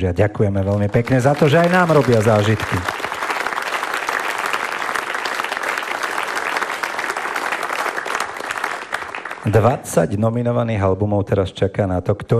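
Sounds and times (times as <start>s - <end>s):
speech: 0.0s - 3.0s, 9.5s - 12.3s
audience applauding music creators at the ESPRIT music awards ceremony: 0.6s - 9.8s.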